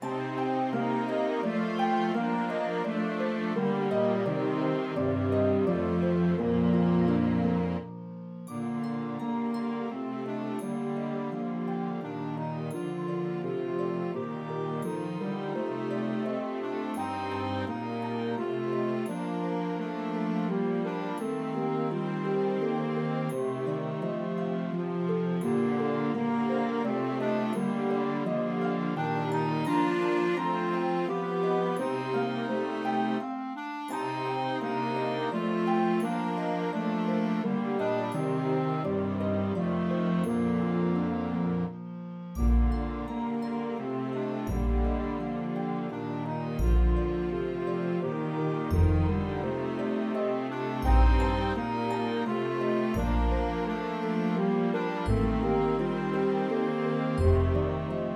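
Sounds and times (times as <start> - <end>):
clarinet melody: 0.0 - 58.1.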